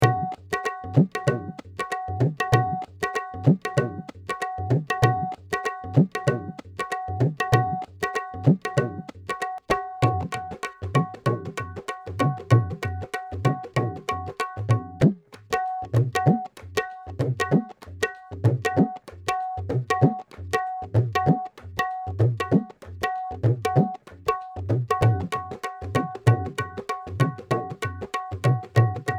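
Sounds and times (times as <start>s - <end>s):
tabla: 0.0s - 29.1s.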